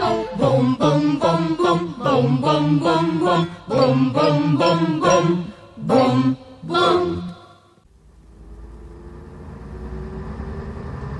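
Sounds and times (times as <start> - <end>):
speech: 0.3 - 5.9
bus engine rumble: 7.8 - 11.1.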